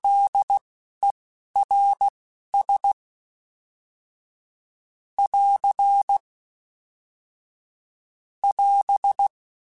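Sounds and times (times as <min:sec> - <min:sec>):
Morse code T runs: 0:00.0 - 0:00.6, 0:01.6 - 0:03.0, 0:05.2 - 0:06.2, 0:08.4 - 0:09.3.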